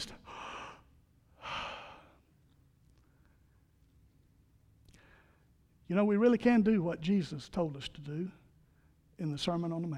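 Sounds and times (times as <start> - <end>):
deep breath: 0.2 - 2.3, 4.9 - 5.6
speech: 5.9 - 8.4, 9.2 - 9.9.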